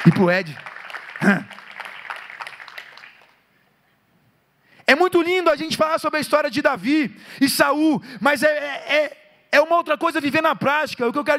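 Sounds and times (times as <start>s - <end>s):
speech: 0.0s - 1.6s, 4.9s - 11.3s
audience applause: 0.0s - 3.4s.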